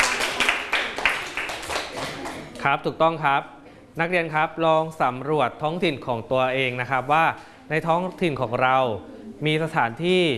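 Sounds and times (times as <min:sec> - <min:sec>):
students in a class clapping for classmates: 0:00.0 - 0:02.6
speech: 0:02.6 - 0:10.3.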